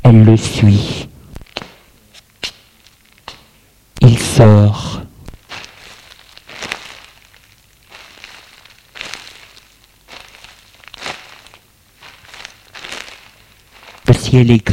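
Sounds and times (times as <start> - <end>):
speech: 0.1 - 1.1, 4.4 - 5.0, 14.3 - 14.7
footsteps crunching in soft snow: 5.3 - 14.7.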